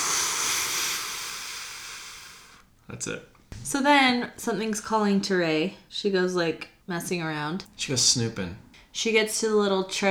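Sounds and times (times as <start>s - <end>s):
voice imitating escaping steam hiss: 0.0s - 2.6s
speech: 2.9s - 10.0s.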